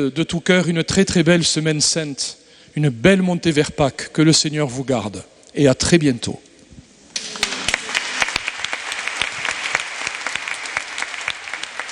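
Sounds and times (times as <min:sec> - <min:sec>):
speech: 0:00.0 - 0:06.5
audience applauding inside a cathedral: 0:07.2 - 0:11.9.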